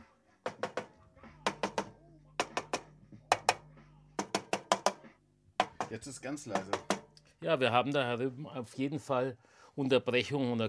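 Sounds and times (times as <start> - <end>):
insulated screwdriver tapping on circuit board: 0.5 - 7.2
speech: 5.9 - 10.6.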